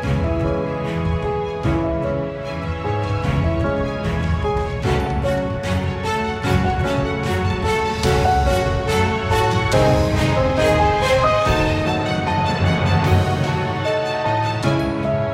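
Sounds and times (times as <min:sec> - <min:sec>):
felt piano on tape: 0:00.0 - 0:15.3.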